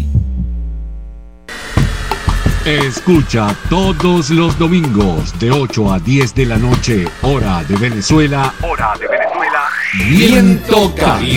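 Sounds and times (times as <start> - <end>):
heartbeat sound effect: 0.0 - 0.8
speech: 2.6 - 11.3.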